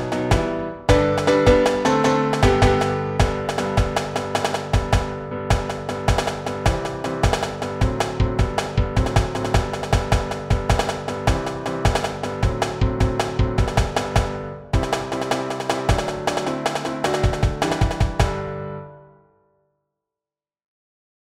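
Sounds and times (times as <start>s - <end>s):
percussive piano: 0.0s - 19.0s.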